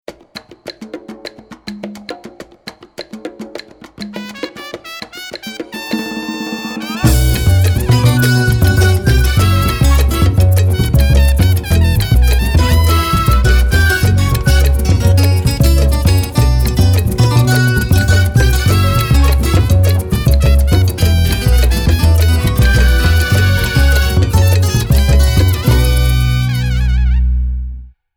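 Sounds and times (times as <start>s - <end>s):
son music: 7.0s - 27.8s.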